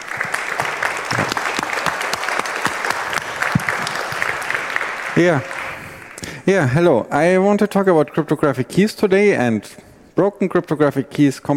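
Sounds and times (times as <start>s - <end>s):
audience applause: 0.0s - 6.4s
speech: 5.2s - 5.6s, 6.4s - 11.5s.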